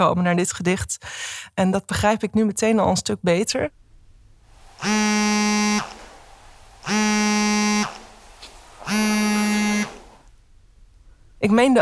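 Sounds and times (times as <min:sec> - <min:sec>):
speech: 0:00.0 - 0:03.8, 0:04.8 - 0:05.3, 0:11.4 - 0:11.8
phone vibrating on silent mode: 0:04.5 - 0:10.2.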